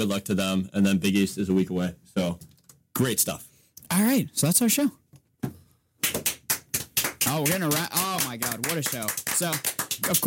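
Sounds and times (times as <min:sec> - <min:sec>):
speech: 0:00.0 - 0:05.0, 0:07.3 - 0:10.2
hands clapping: 0:06.0 - 0:10.2.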